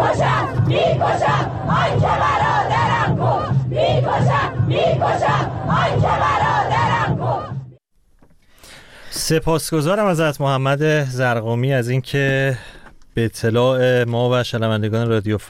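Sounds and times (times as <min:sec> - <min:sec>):
large funeral crowd chanting protest slogans: 0:00.0 - 0:07.8
speech: 0:09.3 - 0:15.4.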